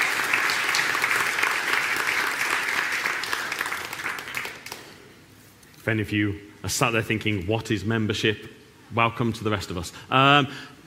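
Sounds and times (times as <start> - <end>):
congregation applause at a church service welcoming a new member: 0.0 - 5.0
speech: 5.8 - 10.7.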